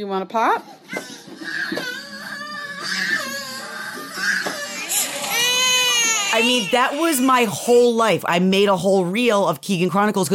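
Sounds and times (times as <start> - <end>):
speech: 0.0 - 1.0, 6.3 - 10.3
toddler crying and screaming: 0.9 - 7.7.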